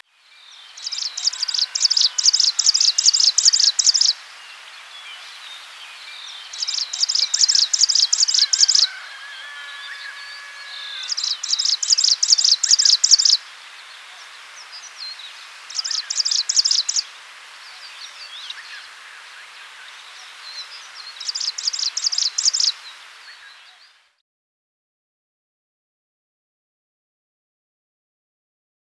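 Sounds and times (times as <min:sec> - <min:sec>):
striated prinia song: 0:00.0 - 0:24.0
background bird calls: 0:00.0 - 0:24.2.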